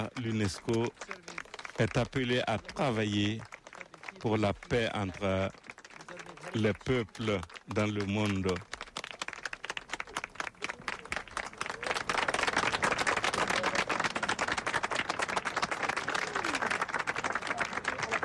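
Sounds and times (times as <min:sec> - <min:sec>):
speech: 0:00.0 - 0:01.2, 0:01.8 - 0:03.5, 0:04.2 - 0:05.6, 0:06.5 - 0:08.7
large crowd applause: 0:00.0 - 0:18.2.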